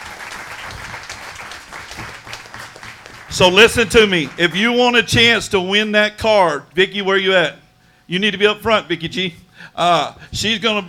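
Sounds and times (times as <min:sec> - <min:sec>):
audience applause: 0:00.0 - 0:04.7
speech: 0:03.3 - 0:10.8.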